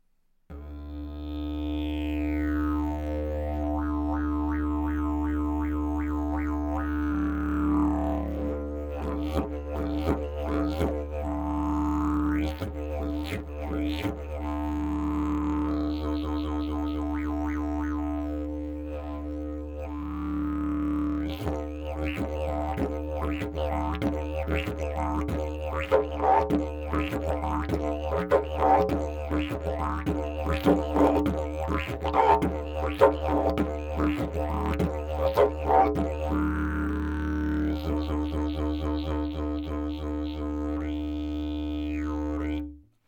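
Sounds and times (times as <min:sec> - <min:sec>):
didgeridoo: 0:00.5 - 0:42.8.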